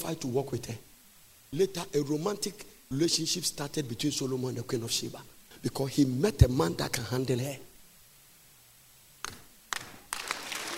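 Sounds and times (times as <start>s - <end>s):
speech: 0.0s - 0.9s, 1.5s - 7.7s
audience clapping: 9.2s - 10.7s.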